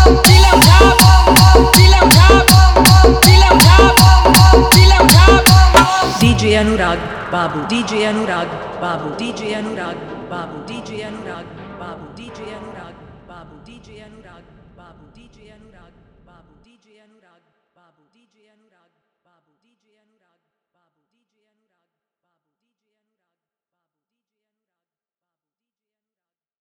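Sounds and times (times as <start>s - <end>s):
bass music mix: 0.0s - 16.2s.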